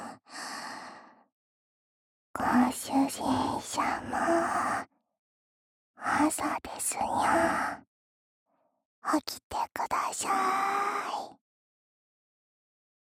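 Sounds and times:
person whispering: 2.4 - 4.8, 6.1 - 7.8, 9.6 - 11.4.

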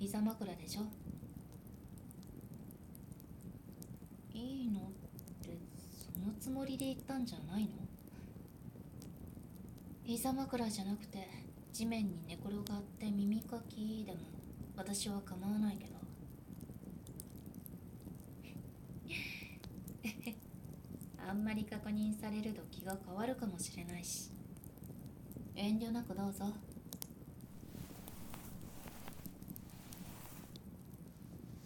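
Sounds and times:
crackling campfire: 0.0 - 31.6
ASMR ear cleaning: 27.5 - 30.6.

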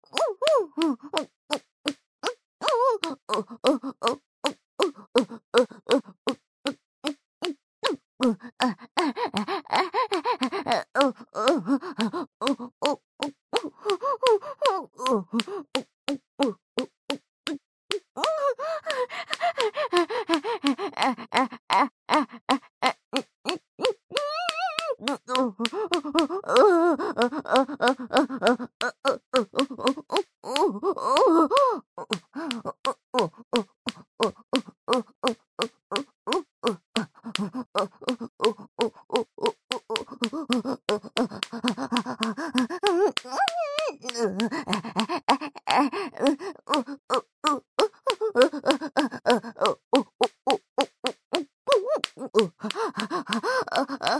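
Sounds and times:
person moaning: 0.2 - 1.3, 2.2 - 6.2, 7.8 - 16.9, 17.5 - 54.1.

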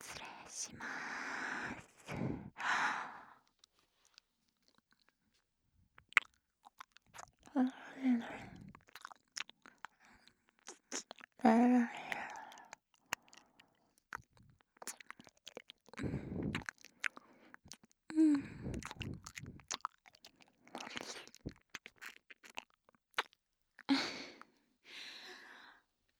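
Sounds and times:
soft breathy sighs: 0.1 - 3.5, 7.5 - 8.8, 16.0 - 19.6, 23.9 - 25.8
ASMR ear-licking wet mouth smacks, licks and clicks at the right ear: 6.0 - 7.6, 8.2 - 23.4.

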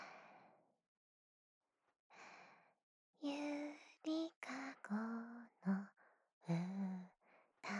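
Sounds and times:
lullaby: 3.3 - 7.7.

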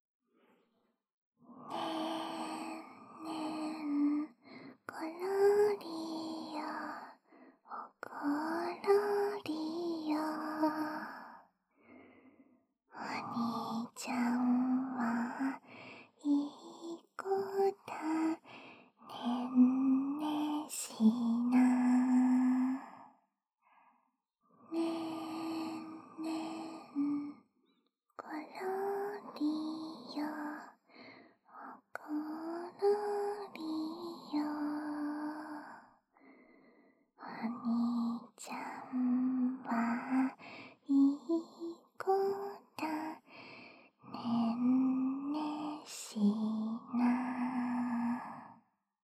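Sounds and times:
lullaby: 1.5 - 11.5, 12.9 - 23.2, 24.6 - 27.5, 28.2 - 48.7.

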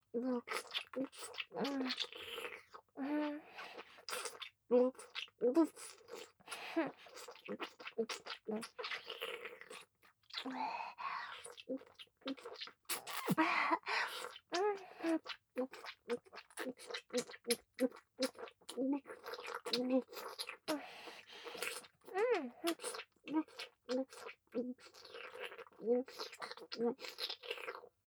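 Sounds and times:
intense oral sex sounds: 0.2 - 28.0.

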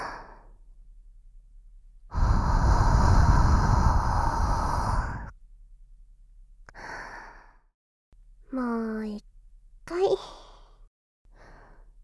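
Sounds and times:
deep breath in and out: 2.1 - 5.3, 6.7 - 7.7, 10.2 - 12.0.

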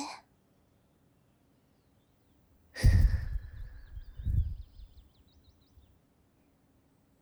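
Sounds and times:
blowing into the right ear: 2.8 - 4.9.

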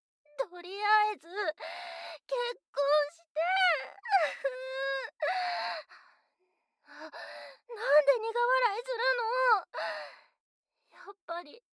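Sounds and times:
speech: 0.5 - 6.0, 6.9 - 10.2, 11.0 - 11.7
woman crying: 3.4 - 5.8.

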